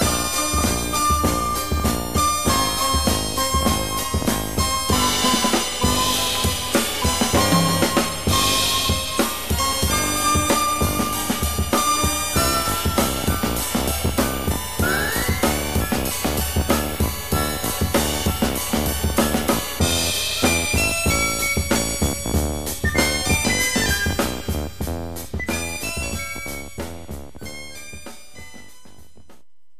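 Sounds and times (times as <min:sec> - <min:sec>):
Moog synthesizer: 0:00.0 - 0:29.4.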